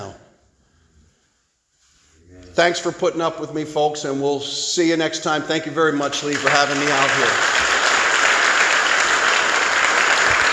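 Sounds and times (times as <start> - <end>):
speech: 2.6 - 7.7
audience applause: 6.0 - 10.5.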